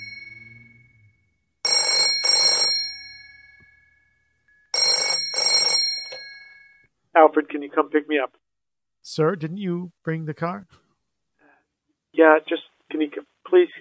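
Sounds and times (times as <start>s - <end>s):
telephone bell ringing: 0.0s - 0.8s, 1.6s - 6.9s
speech: 7.2s - 8.4s, 9.1s - 10.8s, 12.2s - 13.7s.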